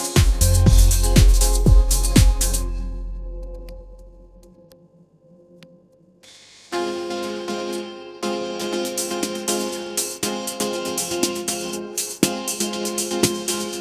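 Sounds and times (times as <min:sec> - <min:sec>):
upbeat pop melody: 0:00.0 - 0:03.9, 0:07.0 - 0:13.7.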